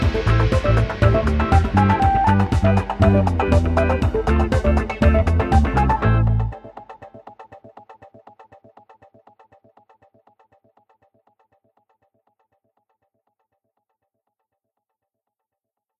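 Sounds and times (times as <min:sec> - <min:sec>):
instrumental music: 0:00.0 - 0:07.6.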